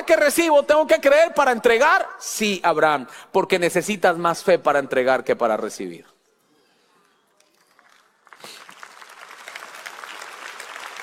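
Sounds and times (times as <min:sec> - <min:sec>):
speech: 0:00.1 - 0:06.1
audience applause: 0:07.6 - 0:11.0.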